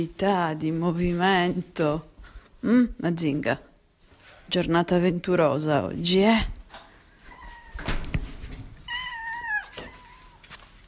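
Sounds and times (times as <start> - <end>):
speech: 0.0 - 3.7, 4.5 - 6.6
cat meowing: 7.3 - 8.0, 8.8 - 10.8
rustling thump: 7.8 - 8.8.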